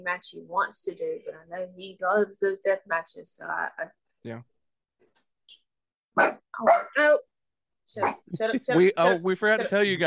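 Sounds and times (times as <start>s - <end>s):
speech: 0.0s - 4.5s, 6.2s - 7.3s, 7.9s - 10.0s
dog barking: 6.2s - 7.0s, 8.0s - 8.3s.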